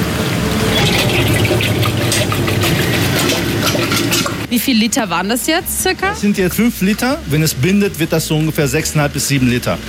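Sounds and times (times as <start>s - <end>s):
ice cream mix poured into ice cream machine: 0.2s - 4.5s
speech: 4.5s - 9.8s.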